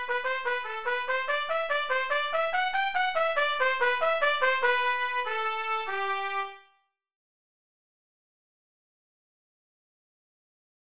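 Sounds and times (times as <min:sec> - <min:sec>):
trumpet: 0:00.0 - 0:06.9.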